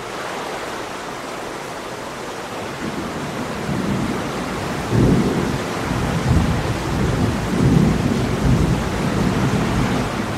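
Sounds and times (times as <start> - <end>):
heavy rain downpour: 0.0 - 10.3
deep rolling thunder: 2.8 - 10.3.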